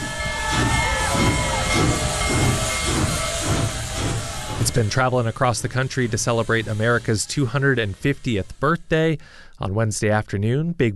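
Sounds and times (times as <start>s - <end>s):
faint whistle-like tones: 0.0s - 7.8s
rhythmic chuffing of steam locomotive: 0.0s - 9.5s
steam locomotive releasing steam: 0.0s - 10.2s
speech: 4.8s - 10.9s.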